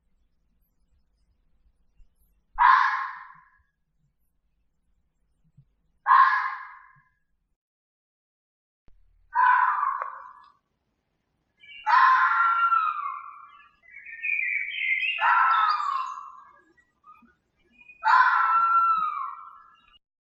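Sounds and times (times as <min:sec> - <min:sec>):
fox calling: 0:02.6 - 0:03.5, 0:06.0 - 0:06.8, 0:09.3 - 0:10.5, 0:11.6 - 0:13.6, 0:14.3 - 0:16.5, 0:17.8 - 0:19.9.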